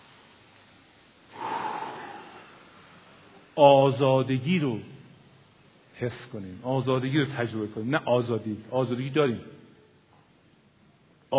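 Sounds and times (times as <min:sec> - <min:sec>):
audience drawing a deep breath together: 0:01.3 - 0:03.3
speech: 0:03.6 - 0:04.9, 0:06.0 - 0:09.6.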